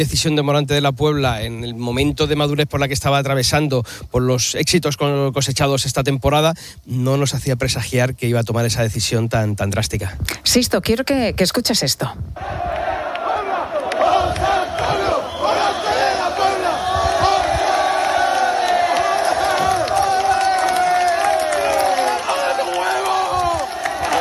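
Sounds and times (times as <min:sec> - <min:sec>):
speech: 0:00.0 - 0:13.0
large crowd of young people cheering and chanting: 0:12.4 - 0:24.1.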